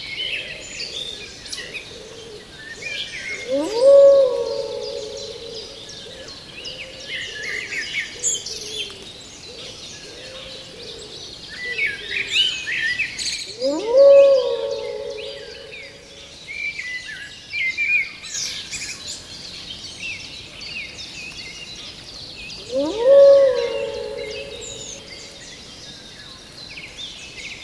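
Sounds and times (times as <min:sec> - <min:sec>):
forest animal sounds: 0:00.1 - 0:17.3, 0:22.3 - 0:26.6.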